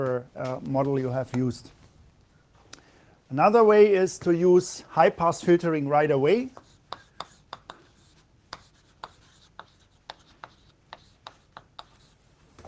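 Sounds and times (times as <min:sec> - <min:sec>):
speech: 0:00.0 - 0:01.8, 0:03.3 - 0:06.6
handwriting during a lecture: 0:06.5 - 0:12.4.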